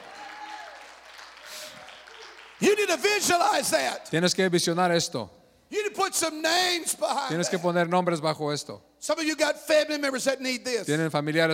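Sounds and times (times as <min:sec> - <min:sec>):
audience applause: 0:00.0 - 0:03.6
speech: 0:02.6 - 0:05.4, 0:06.0 - 0:11.5.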